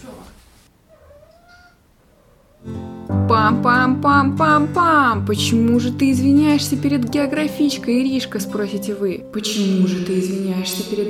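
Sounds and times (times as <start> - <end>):
house cat meowing: 0.8 - 2.8
speech: 3.4 - 11.0.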